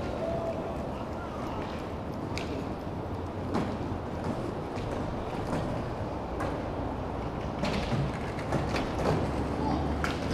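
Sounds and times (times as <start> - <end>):
faint voices: 0.0 - 2.0
skateboard wheels rumbling at a skate practice spot: 0.0 - 10.3.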